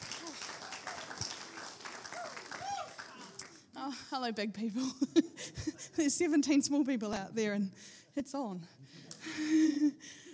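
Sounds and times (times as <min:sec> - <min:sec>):
audience applause: 0:00.0 - 0:03.6
speech: 0:03.9 - 0:08.8, 0:09.5 - 0:10.2.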